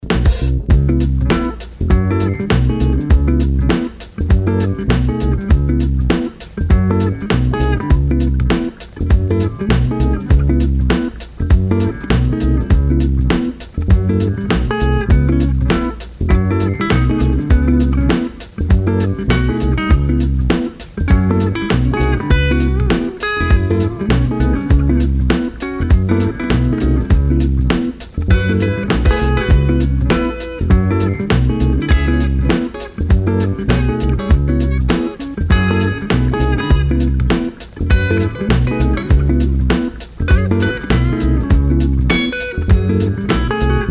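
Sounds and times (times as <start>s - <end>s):
generic funk music: 0.0s - 43.8s.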